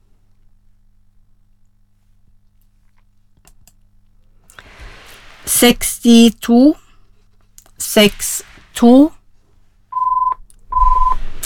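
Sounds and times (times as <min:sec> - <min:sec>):
speech: 0:05.5 - 0:06.8, 0:07.8 - 0:09.2
telephone dialing tones: 0:10.0 - 0:11.2.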